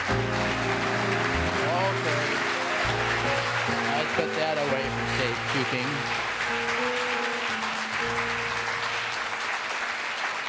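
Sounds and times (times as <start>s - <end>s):
audience applause: 0.0s - 10.4s.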